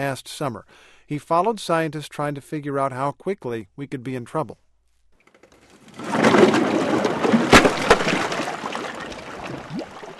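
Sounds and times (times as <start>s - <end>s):
speech: 0.0s - 4.6s
glacier ice tumbling into the sea: 5.7s - 10.1s.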